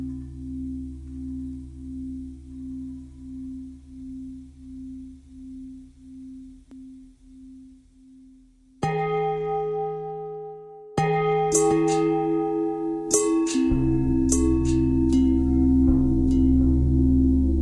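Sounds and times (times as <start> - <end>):
long bell ringing: 8.9 - 17.4.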